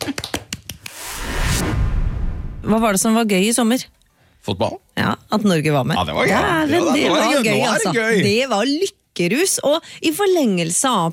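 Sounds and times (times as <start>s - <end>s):
sharp hand claps: 0.0s - 1.0s
broadband noise: 0.9s - 3.1s
speech: 2.7s - 11.1s.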